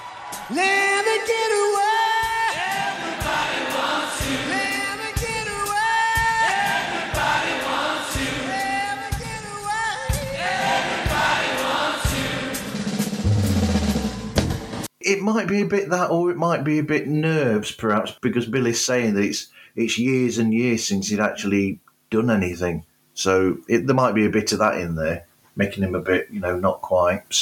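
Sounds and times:
concert crowd singing along: 0:00.0 - 0:13.2
speech: 0:00.5 - 0:01.5, 0:15.1 - 0:27.4
thumping drum beat: 0:02.2 - 0:14.9.

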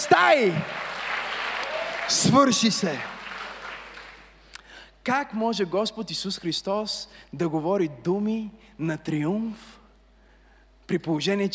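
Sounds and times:
speech: 0:00.0 - 0:00.8, 0:02.1 - 0:03.2, 0:05.0 - 0:09.8, 0:10.9 - 0:11.5
audience applause: 0:00.0 - 0:04.3.

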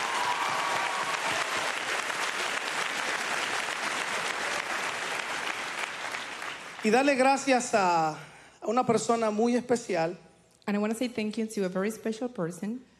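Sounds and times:
audience applause: 0:00.0 - 0:07.3
speech: 0:06.8 - 0:12.9.

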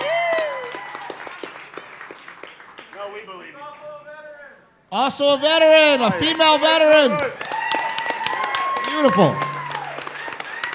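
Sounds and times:
audience round of applause: 0:00.0 - 0:03.2, 0:06.0 - 0:10.7
speech: 0:04.9 - 0:07.4, 0:09.0 - 0:09.4.

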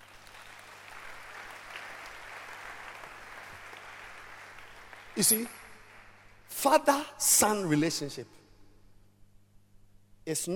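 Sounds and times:
audience clapping: 0:00.0 - 0:06.6
speech: 0:05.2 - 0:05.6, 0:06.6 - 0:08.4, 0:10.3 - 0:10.5.

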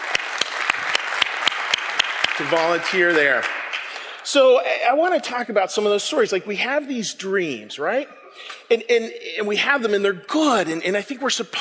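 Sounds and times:
crowd applauding: 0:00.0 - 0:04.4
speech: 0:02.4 - 0:03.6, 0:04.3 - 0:11.5.

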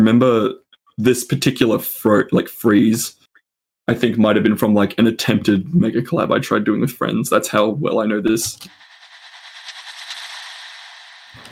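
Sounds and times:
speech: 0:00.0 - 0:03.2, 0:03.9 - 0:08.8
horror impact sound effect sample: 0:08.7 - 0:11.5.

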